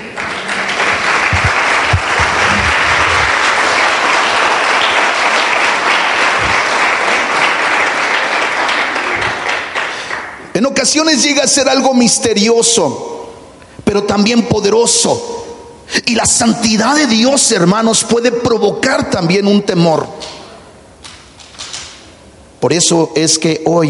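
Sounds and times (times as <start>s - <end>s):
audience applause: 0.0s - 10.5s
speech: 10.8s - 13.1s, 14.0s - 20.4s, 22.6s - 23.8s.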